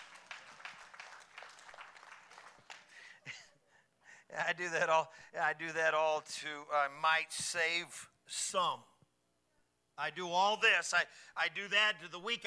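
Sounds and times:
applause: 0.0 - 3.2
speech: 4.3 - 8.9, 10.0 - 12.4.

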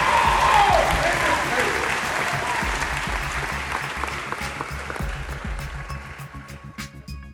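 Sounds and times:
audience hand clapping: 0.0 - 6.2.

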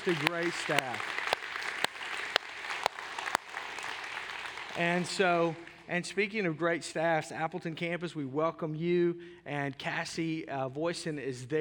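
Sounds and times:
speech: 0.0 - 1.3, 4.8 - 11.6
crowd applause: 0.0 - 5.8.

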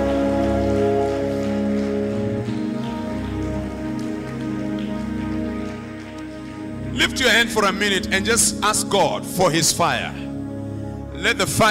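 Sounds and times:
audience clapping hands: 0.0 - 8.1
speech: 7.0 - 10.3, 11.2 - 11.6.

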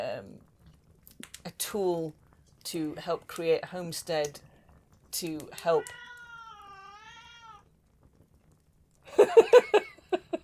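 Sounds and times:
speech: 0.2 - 0.5, 1.6 - 4.5, 5.1 - 6.0, 9.2 - 9.8
cat soft drawn-out meow: 5.6 - 7.7.

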